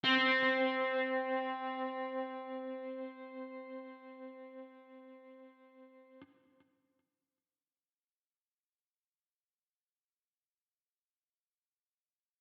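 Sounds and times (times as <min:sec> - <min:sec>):
ambient guitar C3: 0:00.0 - 0:06.5.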